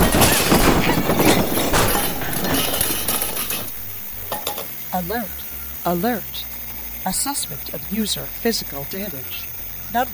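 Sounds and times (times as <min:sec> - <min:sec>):
heavy body crashing into a pile of junk: 0:00.0 - 0:04.7
breaking and clinking debris clattering: 0:00.0 - 0:04.8
speech: 0:05.0 - 0:10.1.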